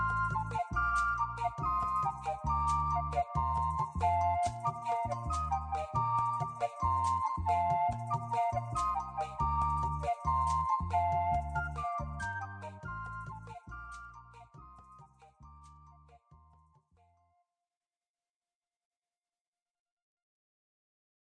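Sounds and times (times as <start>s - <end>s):
urban jingle: 0.0s - 16.6s.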